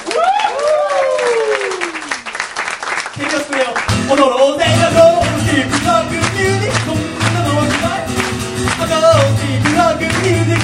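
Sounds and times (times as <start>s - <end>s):
loud voice whooping: 0.0s - 2.2s
applause and clapping: 0.0s - 10.6s.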